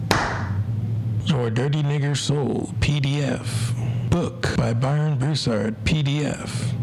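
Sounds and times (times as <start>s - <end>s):
hand clapping: 0.1s - 0.6s
speech: 1.4s - 6.7s.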